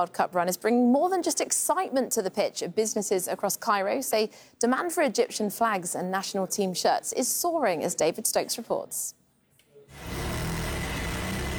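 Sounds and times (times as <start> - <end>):
speech: 0.0 - 9.2
sewing machines stitching Egyptian national flags in a Cairo workshop: 10.0 - 11.5.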